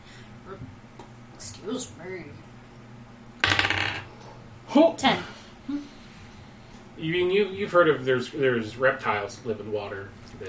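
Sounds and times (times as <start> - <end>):
speech: 1.6 - 2.5, 4.7 - 5.9, 7.0 - 10.4
dice rattling across a table: 3.4 - 4.0.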